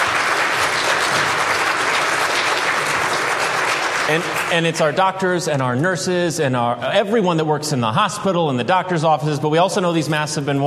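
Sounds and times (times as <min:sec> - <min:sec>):
crowd applauding: 0:00.0 - 0:05.4
speech: 0:04.1 - 0:10.6.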